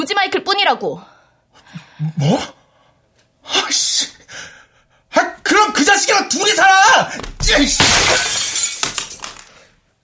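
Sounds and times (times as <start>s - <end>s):
speech: 0.0s - 2.6s, 3.5s - 4.6s, 5.2s - 8.4s
glass of a framed photo shattering, hit by a thrown remote: 7.5s - 9.5s.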